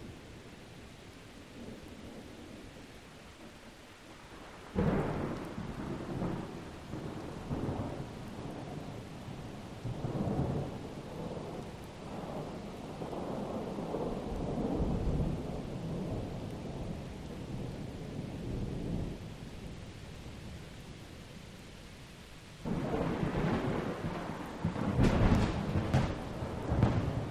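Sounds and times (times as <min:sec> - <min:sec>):
steady very light distant thunder: 0:04.4 - 0:19.7, 0:22.6 - 0:27.2.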